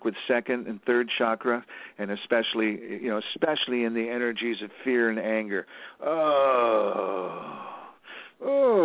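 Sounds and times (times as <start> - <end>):
speech: 0.0 - 7.7, 8.4 - 8.8
person groaning during a sound-healing practice: 6.0 - 8.8.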